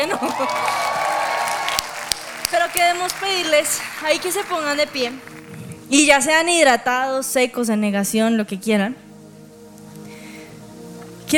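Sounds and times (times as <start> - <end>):
speech: 0.0 - 0.9, 2.5 - 9.0
audience applause: 0.0 - 5.8.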